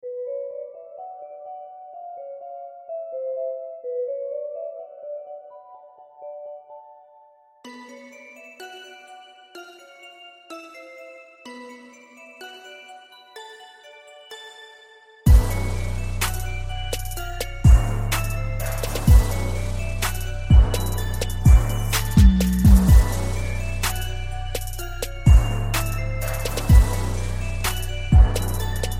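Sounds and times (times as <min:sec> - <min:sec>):
Christmas trap music: 0:07.6 - 0:28.9.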